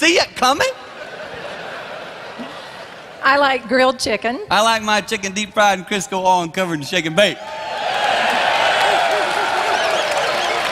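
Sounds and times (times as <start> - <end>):
speech: 0.1 - 0.8, 3.2 - 7.6
laughter: 0.6 - 3.4
large audience cheering and applauding: 7.1 - 10.7
whoops: 7.4 - 10.7.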